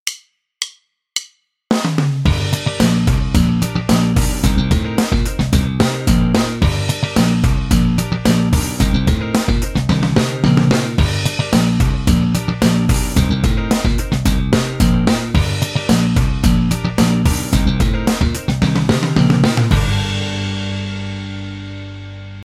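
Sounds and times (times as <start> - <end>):
slap bass exercise: 2.3 - 22.4.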